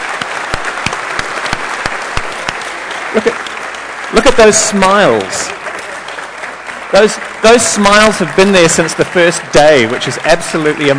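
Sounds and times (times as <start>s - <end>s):
audience applause: 0.0s - 10.9s
speech: 3.1s - 3.5s, 4.1s - 5.6s, 6.9s - 10.9s.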